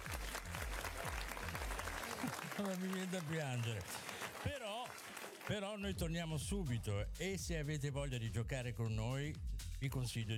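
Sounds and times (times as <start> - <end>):
pounding electronic beat with deep booming kicks: 0.0 - 2.0, 5.8 - 10.3
party crowd applause at a DJ set: 0.0 - 5.9
speech: 2.2 - 10.3.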